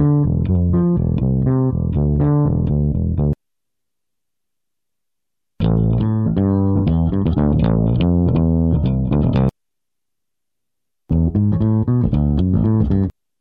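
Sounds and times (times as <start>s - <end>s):
bass: 0.0s - 3.4s, 5.6s - 9.6s, 11.1s - 13.2s.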